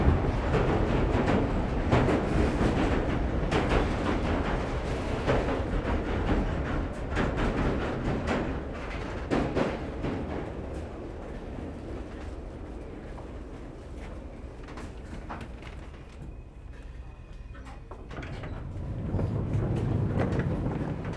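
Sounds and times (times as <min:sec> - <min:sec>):
London subway doors closing: 0:00.0 - 0:21.1
passengers boarding London subway train: 0:00.0 - 0:21.1
passengers disembarking at subway stop: 0:04.8 - 0:21.1.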